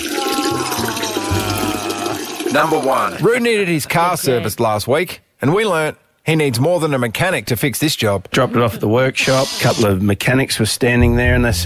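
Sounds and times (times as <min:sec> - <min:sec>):
pee sound effect, trickling water: 0:00.0 - 0:03.3
speech: 0:02.5 - 0:11.6.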